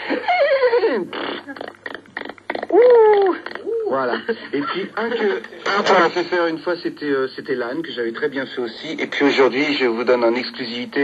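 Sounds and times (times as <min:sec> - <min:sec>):
human voice imitating a horse's neigh: 0:00.2 - 0:04.2
speech: 0:04.0 - 0:11.0.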